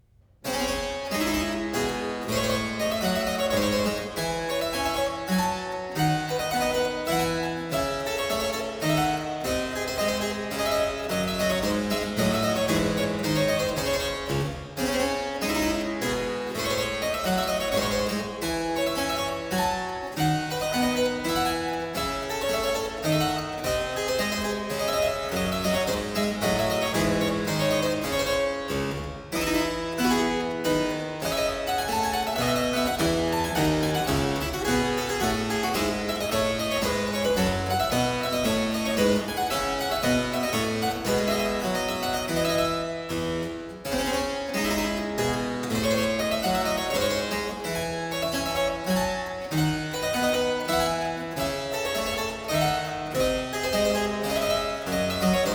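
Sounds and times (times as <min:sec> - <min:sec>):
harpsichord round: 0:00.4 - 0:55.5.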